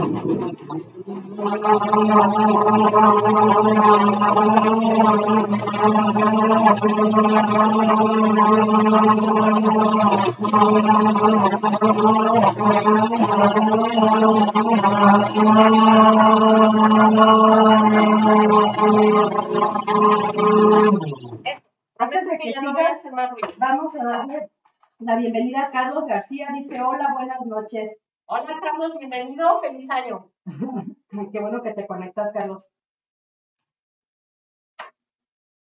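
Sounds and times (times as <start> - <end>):
kitchen blender grinding whole spices such as cloves: 0.0 - 21.5
speech: 0.2 - 32.8.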